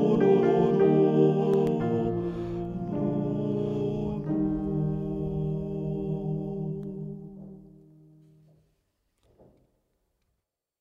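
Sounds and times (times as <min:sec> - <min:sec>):
soprano singing: 0:00.0 - 0:08.3.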